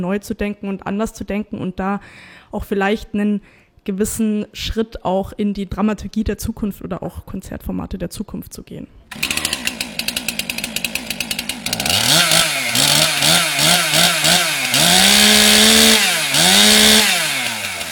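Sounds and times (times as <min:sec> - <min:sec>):
speech: 0:00.0 - 0:09.4
chainsaw carving a statue from a wooden log at the Bürgerbräu site in Würzburg: 0:09.1 - 0:17.9.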